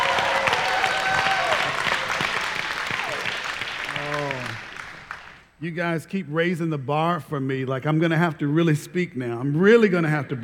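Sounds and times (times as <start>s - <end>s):
whistles and cheers: 0.0s - 5.4s
crowd applauding: 0.0s - 5.6s
speech: 5.6s - 10.4s.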